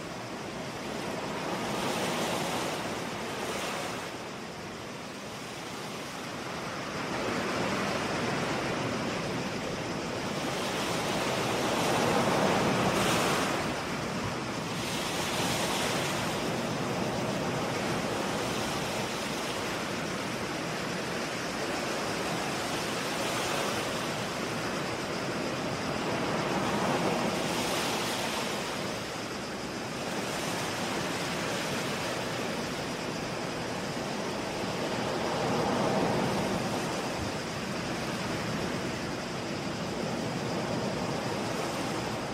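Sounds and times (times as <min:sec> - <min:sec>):
waves on an island shoreline: 0:00.0 - 0:42.3.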